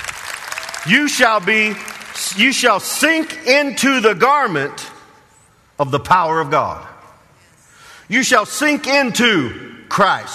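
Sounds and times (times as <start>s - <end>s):
audience hand clapping: 0.0s - 3.4s
speech: 0.8s - 5.0s, 5.8s - 6.9s, 8.1s - 10.3s.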